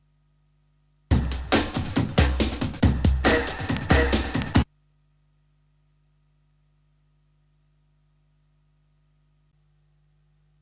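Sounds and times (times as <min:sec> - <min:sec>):
breakbeat drums: 0:01.1 - 0:04.7.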